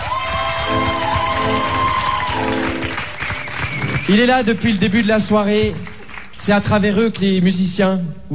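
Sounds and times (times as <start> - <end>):
audience applause: 0.0 - 6.6
speech: 4.1 - 8.3.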